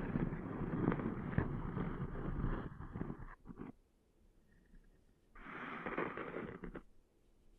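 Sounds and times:
scratchy rubbing of sand cleaned out of an ear: 0:00.1 - 0:03.8, 0:05.4 - 0:06.9.

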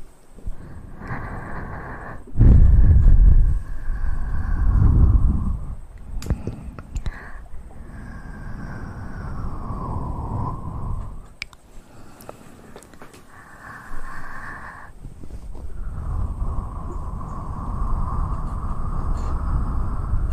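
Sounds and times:
airy blowing with low puffs: 0:00.0 - 0:20.3
breathy hums: 0:00.0 - 0:20.3
mouth clicks and smacks: 0:06.0 - 0:07.5, 0:11.0 - 0:13.4.

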